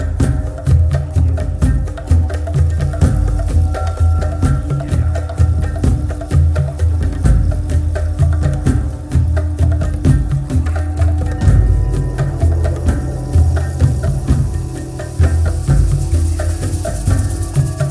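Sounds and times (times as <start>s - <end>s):
drum call: 0.2s - 17.8s.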